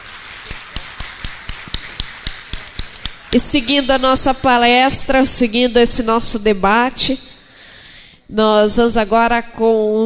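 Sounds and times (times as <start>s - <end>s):
audience applause crisp claps: 0.0s - 3.4s
speech: 3.3s - 7.3s, 8.3s - 10.0s.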